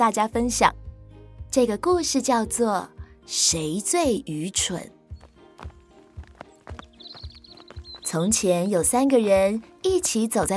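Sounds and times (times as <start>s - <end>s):
speech: 0.0s - 0.8s, 1.5s - 5.0s, 8.1s - 10.5s
horse hooves clip-clopping as a knight rides up: 5.2s - 10.5s.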